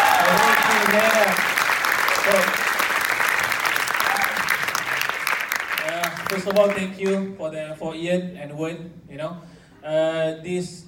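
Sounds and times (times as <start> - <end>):
audience applause: 0.0 - 6.9
speech: 6.4 - 10.8.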